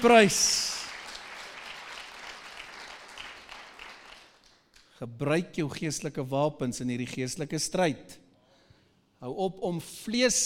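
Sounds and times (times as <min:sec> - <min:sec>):
speech: 0:00.0 - 0:00.7, 0:05.0 - 0:08.2, 0:09.2 - 0:10.4
audience clapping: 0:00.0 - 0:05.0.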